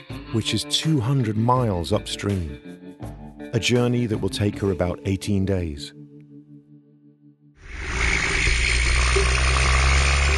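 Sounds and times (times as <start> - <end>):
speech: 0.3 - 2.8, 3.5 - 6.0
logging trucks trundling, vibrating through water: 7.7 - 10.3.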